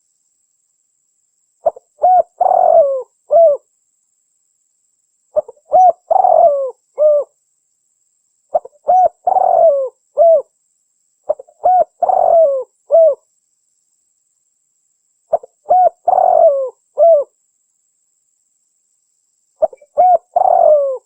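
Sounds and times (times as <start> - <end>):
spotted dove cooing: 1.6 - 3.7, 5.4 - 7.3, 8.5 - 10.5, 11.3 - 13.2, 15.3 - 17.3, 19.6 - 21.0.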